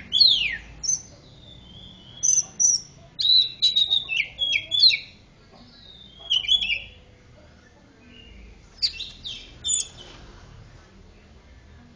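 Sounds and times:
Oriental magpie-robin singing rich whistled notes: 0.0 - 5.2, 5.8 - 7.0, 8.1 - 10.0.

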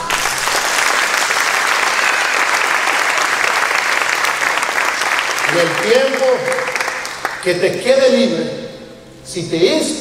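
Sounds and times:
audience applause: 0.0 - 7.6
speech: 5.6 - 6.7, 7.4 - 8.6, 9.3 - 9.9.

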